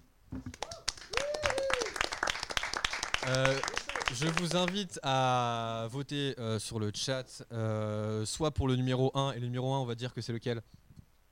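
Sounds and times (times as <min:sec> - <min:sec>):
audience applause: 0:00.5 - 0:04.8
speech: 0:03.3 - 0:10.8.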